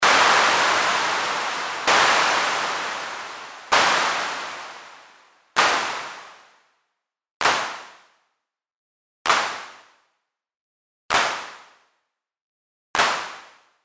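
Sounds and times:
clap: 0.0 - 6.6, 7.4 - 8.2, 9.3 - 10.0, 11.1 - 11.8, 13.0 - 13.8.

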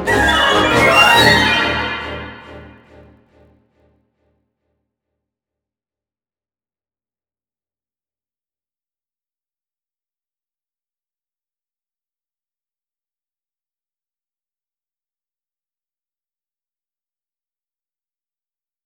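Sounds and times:
marcato strings, brass and woodwind runs: 0.1 - 2.8.

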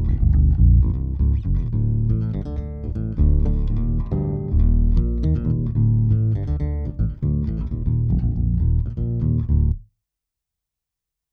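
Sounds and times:
BH-550 passive J bass played with fingers: 0.0 - 9.9.

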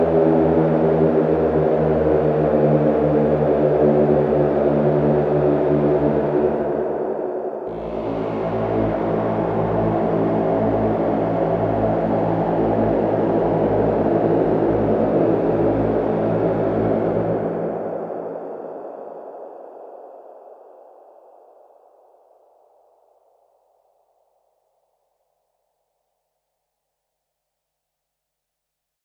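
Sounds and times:
synthesizer: 0.0 - 19.0.

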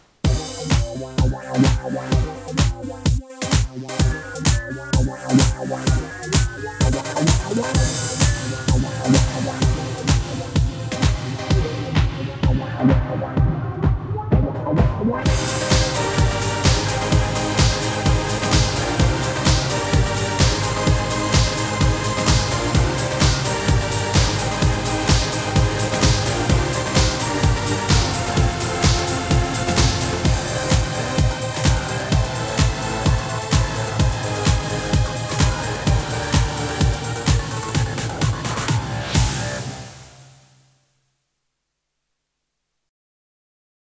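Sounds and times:
PSR-S670 keyboard DJ style music: 0.2 - 40.2.

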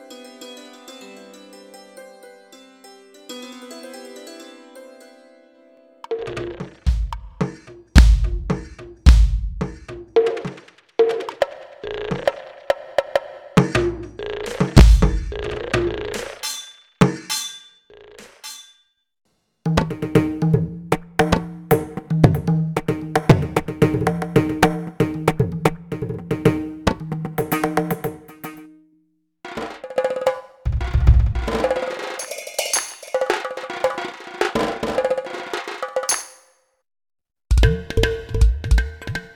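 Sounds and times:
Roland SPD-20 Pro Indian percussion kit: 6.1 - 17.5, 19.7 - 28.6, 29.5 - 36.5, 37.5 - 39.3.

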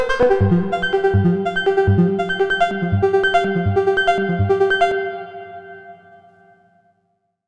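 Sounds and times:
A-111 hardsync synthesizer and Trautonium with hall reverb: 0.1 - 6.0.

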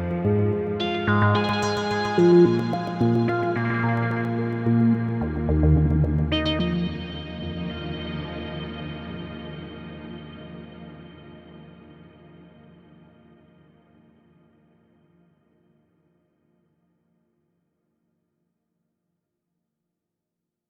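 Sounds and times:
synthesizer with plate reverb: 0.0 - 12.8.

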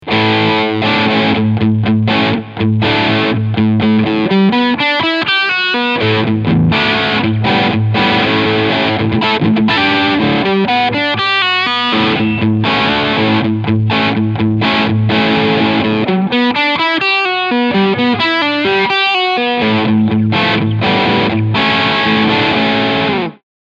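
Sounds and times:
Fender Vintera 50s Telecaster crunch sound on bridge pickup: 0.0 - 23.4.

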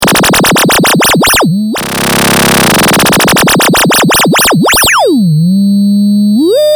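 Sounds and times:
synthesizer filter FM on VCO1 from 0 to 2 kHz: 0.0 - 6.6.

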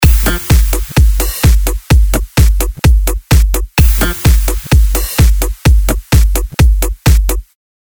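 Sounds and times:
electro music: 0.0 - 7.5.

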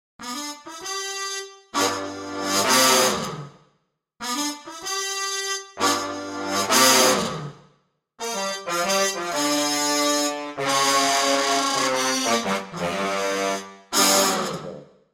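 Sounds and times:
trumpet: 0.2 - 3.5, 4.2 - 7.6, 8.2 - 14.8
trombone: 0.3 - 3.5, 4.2 - 7.5, 8.2 - 14.8.

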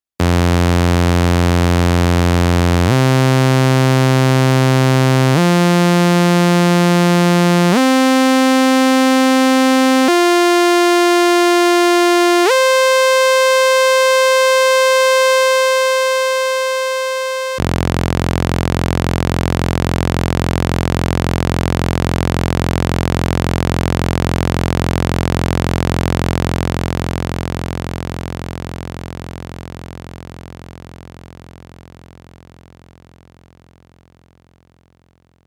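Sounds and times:
sawtooth wave tone: 0.2 - 27.4.

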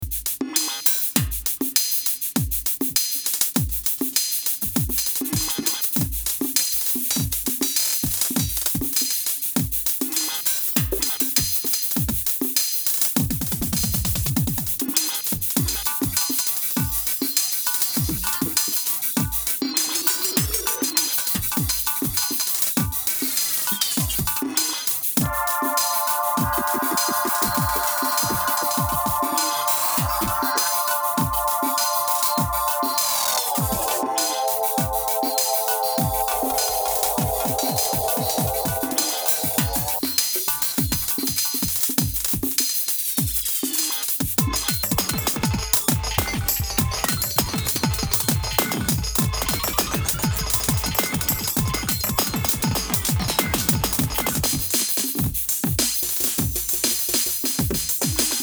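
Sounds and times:
drums with Eventide H3000 stutter effect: 0.0 - 58.4
synths: 25.2 - 40.1.

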